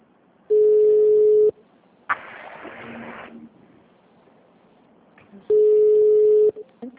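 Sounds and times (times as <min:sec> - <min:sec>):
telephone ringing tone of an incoming call: 0:00.5 - 0:01.6, 0:05.5 - 0:06.6.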